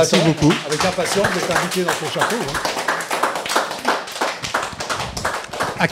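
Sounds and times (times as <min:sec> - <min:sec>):
speech: 0:00.0 - 0:02.9, 0:05.8 - 0:05.9
group applause for a participant after their turn: 0:00.0 - 0:05.9.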